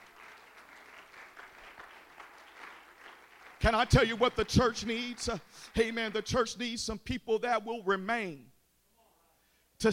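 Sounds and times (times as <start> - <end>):
audience clapping hands: 0.0 - 6.5
speech: 3.6 - 8.5, 9.8 - 9.9.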